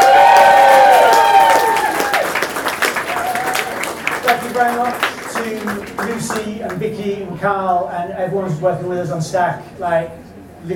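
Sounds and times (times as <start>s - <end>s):
cheering and whoops: 0.0s - 4.0s
audience round of applause: 0.0s - 6.6s
speech: 6.7s - 10.7s.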